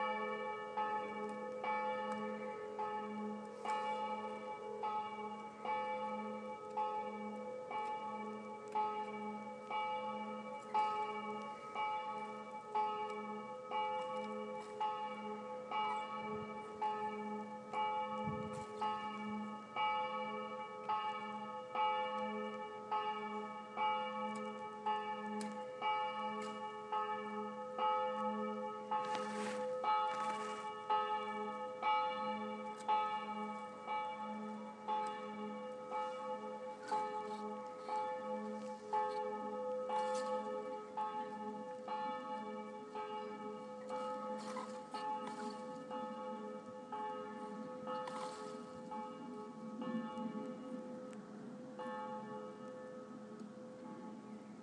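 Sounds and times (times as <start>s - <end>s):
church bells in Stammheim: 0.0s - 54.6s.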